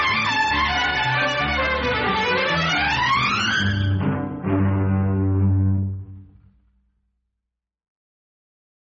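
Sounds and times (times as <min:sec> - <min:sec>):
instrumental music: 0:00.0 - 0:07.0.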